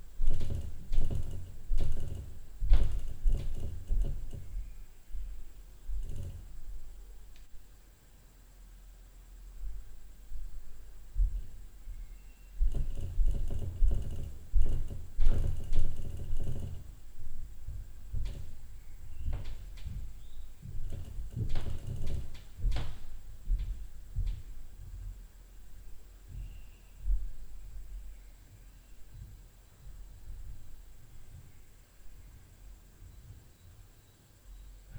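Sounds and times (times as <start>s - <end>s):
tapping knocks at night: 0.0s - 7.6s, 12.6s - 25.1s
low-frequency upstairs noise at night: 0.0s - 34.9s.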